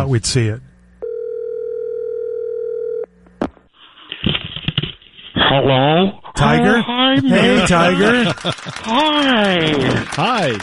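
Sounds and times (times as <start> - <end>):
speech: 0.0 - 0.7, 5.5 - 10.6
telephone line tone: 1.0 - 3.1
laughter: 6.5 - 10.6.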